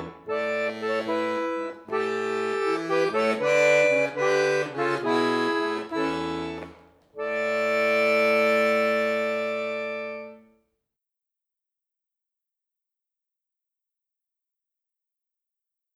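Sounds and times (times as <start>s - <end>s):
slow rock musette accordion miniature: 0.0s - 10.5s.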